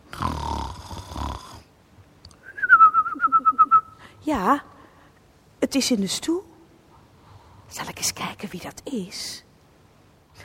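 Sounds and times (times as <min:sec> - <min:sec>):
person snoring while asleep: 0:00.1 - 0:01.7
warbling high whistle on the breath out: 0:02.4 - 0:04.1
speech: 0:04.3 - 0:04.7, 0:05.7 - 0:06.5, 0:07.7 - 0:09.5.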